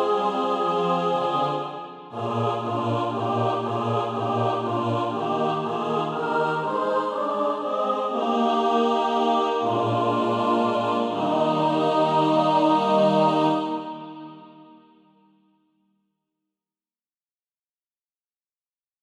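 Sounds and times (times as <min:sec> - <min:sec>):
mixed SATB choir practice music: 0:00.0 - 0:14.9.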